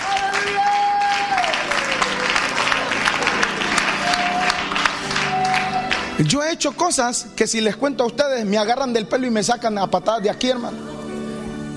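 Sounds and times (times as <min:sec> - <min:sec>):
audience clapping: 0:00.0 - 0:06.4
speech: 0:06.2 - 0:10.9.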